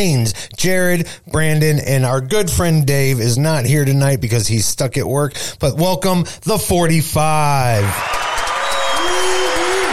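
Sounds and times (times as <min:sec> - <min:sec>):
speech: 0:00.0 - 0:08.3
applause: 0:07.8 - 0:09.9.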